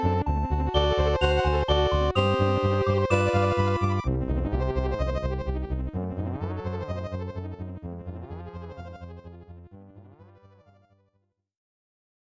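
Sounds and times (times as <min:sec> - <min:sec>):
castle background music: 0:00.0 - 0:09.7.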